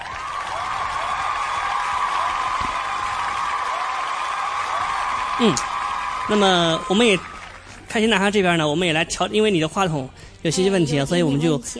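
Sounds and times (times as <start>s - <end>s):
audience applause: 0.0s - 8.4s
speech: 5.4s - 5.7s, 6.3s - 7.3s, 7.9s - 11.7s.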